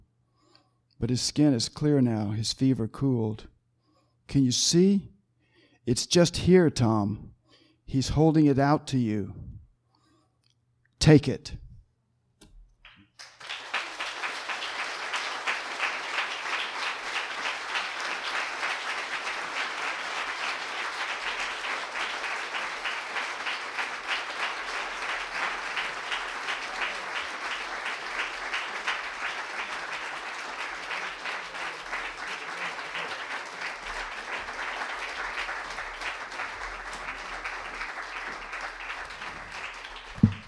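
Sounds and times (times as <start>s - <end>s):
speech: 1.0s - 3.5s, 4.3s - 5.1s, 5.8s - 7.3s, 7.9s - 9.5s, 11.0s - 11.6s
crowd clapping: 12.8s - 40.4s.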